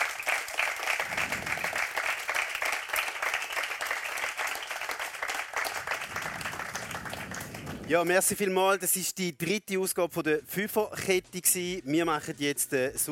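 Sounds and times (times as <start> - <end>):
audience applause: 0.0 - 8.0
speech: 7.9 - 13.1.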